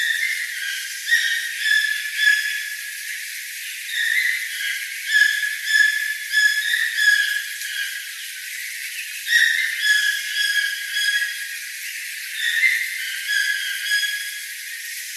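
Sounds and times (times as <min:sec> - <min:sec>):
toucan calls: 0:00.0 - 0:02.8, 0:03.9 - 0:08.0, 0:09.3 - 0:11.5, 0:12.3 - 0:14.4.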